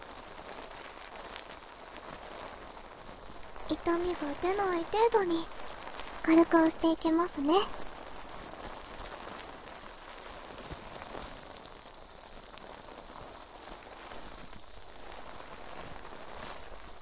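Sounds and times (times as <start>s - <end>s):
foam bubbles fizzing and popping: 0.0s - 17.0s
speech: 3.7s - 5.7s, 6.3s - 7.8s.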